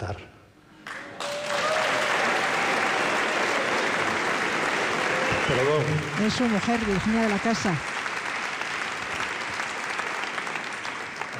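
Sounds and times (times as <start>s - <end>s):
speech: 0.1s - 0.4s, 5.5s - 7.9s
audience applause at a live music show: 0.8s - 11.3s.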